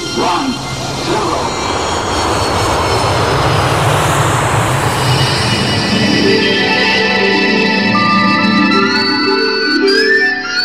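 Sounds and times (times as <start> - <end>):
spaceship takeoff engine roar: 0.0 - 10.5.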